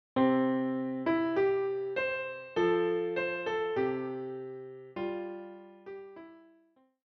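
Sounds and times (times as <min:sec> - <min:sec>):
piano: 0:00.2 - 0:06.8.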